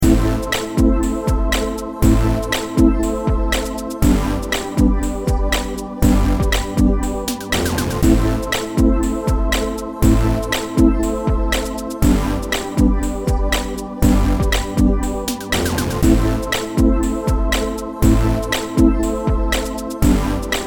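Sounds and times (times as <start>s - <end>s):
instrumental music: 0.0s - 20.6s.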